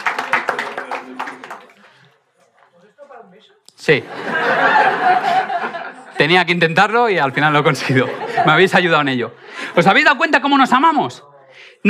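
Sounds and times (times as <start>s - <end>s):
applause: 0.0s - 2.2s
speech: 3.4s - 5.2s, 6.2s - 11.8s
laughter: 3.9s - 10.2s.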